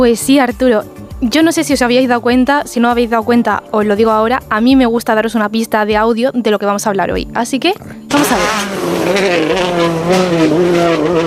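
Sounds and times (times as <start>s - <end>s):
speech: 0.0s - 11.2s
rally car racing: 8.1s - 11.2s.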